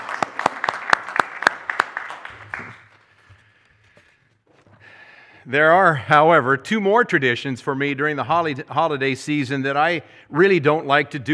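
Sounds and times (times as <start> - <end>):
audience applauding: 0.0 - 3.4
speech: 5.5 - 11.3.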